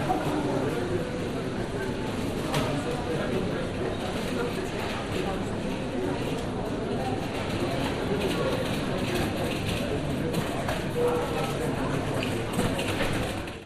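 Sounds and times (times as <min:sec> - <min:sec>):
airport cafe ambience in Stuttgart Germany: 0:00.0 - 0:13.6.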